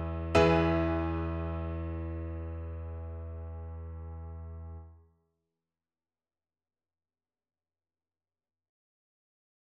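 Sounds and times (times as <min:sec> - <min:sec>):
piano fanfare: 0:00.0 - 0:04.8.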